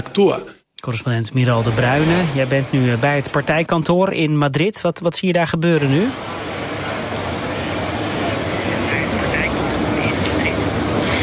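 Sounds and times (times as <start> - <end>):
speech: 0.0 - 6.4
traffic on a busy road: 5.9 - 11.2.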